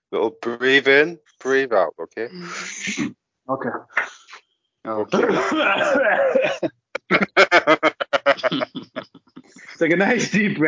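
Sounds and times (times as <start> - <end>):
speech: 0.1 - 4.2, 4.8 - 10.6
wheezing laughter: 5.2 - 10.3.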